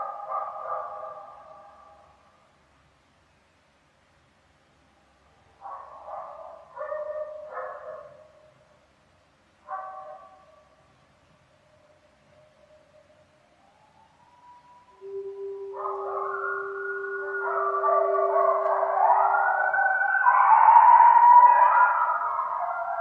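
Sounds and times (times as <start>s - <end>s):
coyote howling: 14.3s - 22.9s.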